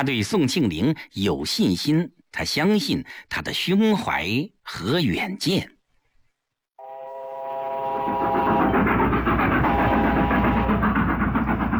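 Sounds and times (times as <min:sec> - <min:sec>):
speech: 0:00.0 - 0:05.8
train whistle: 0:06.8 - 0:11.7.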